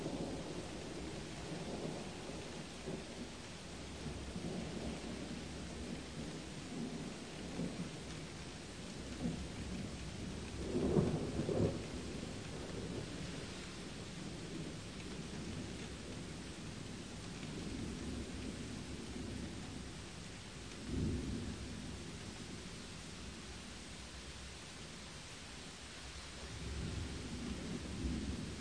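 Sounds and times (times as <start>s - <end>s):
thunder: 0.0s - 3.3s, 3.9s - 19.8s, 20.8s - 22.6s, 26.4s - 28.5s
rain: 0.0s - 28.5s.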